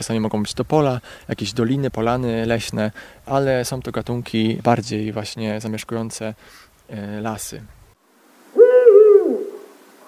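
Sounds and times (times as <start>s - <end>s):
speech: 0.0s - 7.8s
Eurasian eagle-owl hooting: 8.5s - 10.0s.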